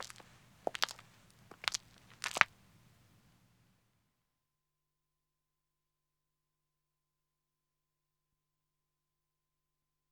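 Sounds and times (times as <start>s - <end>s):
woman's footsteps walking on a country road: 0.0s - 3.3s.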